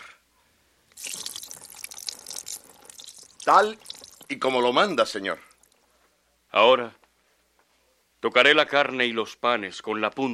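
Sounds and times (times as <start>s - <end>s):
broth poured over meat and bread on a rock: 0.9s - 5.9s
speech: 3.5s - 5.5s, 6.5s - 7.0s, 8.2s - 10.3s.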